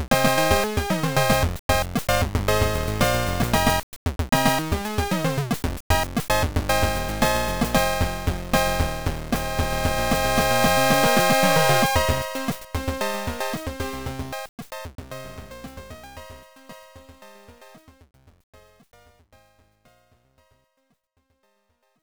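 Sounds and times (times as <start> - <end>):
disco music: 0.0 - 3.8, 4.4 - 14.4.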